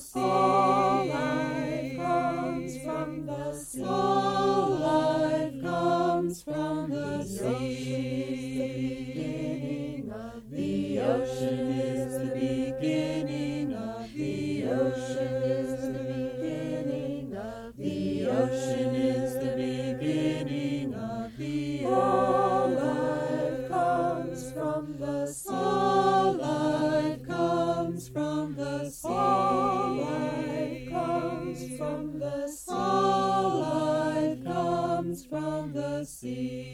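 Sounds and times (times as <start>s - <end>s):
chanting: 0.0s - 36.7s.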